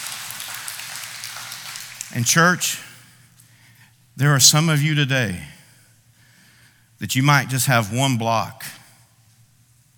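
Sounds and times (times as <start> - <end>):
audience applause: 0.0 - 2.2
speech: 2.1 - 2.9, 4.2 - 5.6, 7.0 - 8.8.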